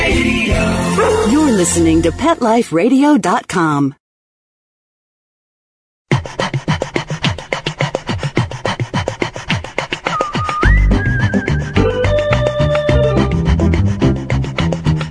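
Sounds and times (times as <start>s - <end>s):
speech: 0.2s - 4.0s
heavy panting: 6.1s - 11.9s, 12.9s - 15.0s.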